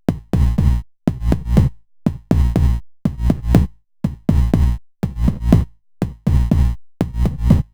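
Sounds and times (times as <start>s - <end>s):
Knobula Kickain mono kick drum loop: 0.0s - 7.7s.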